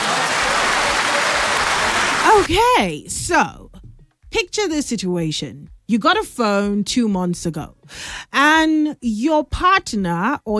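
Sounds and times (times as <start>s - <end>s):
applause from a group of people: 0.0s - 2.5s
speech: 2.3s - 3.6s, 4.3s - 10.5s.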